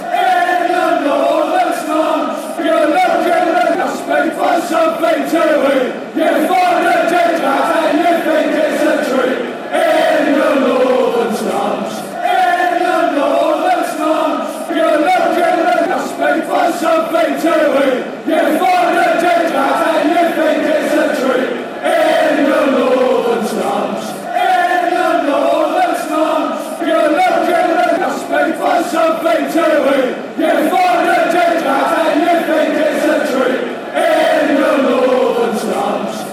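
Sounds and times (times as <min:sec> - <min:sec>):
fans chanting: 0:00.0 - 0:36.3.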